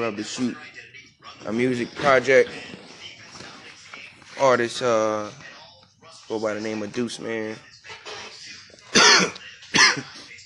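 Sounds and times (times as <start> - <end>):
speech: 0.0 - 2.8, 4.4 - 5.4, 6.3 - 8.0, 9.2 - 10.1
coughing: 8.9 - 10.2
throat clearing: 8.9 - 10.2.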